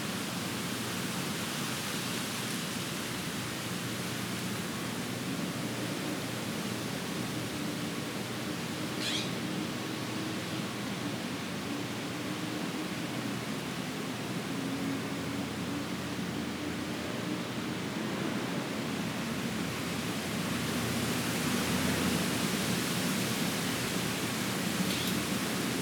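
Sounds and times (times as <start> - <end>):
wind through trees: 0.0 - 25.8.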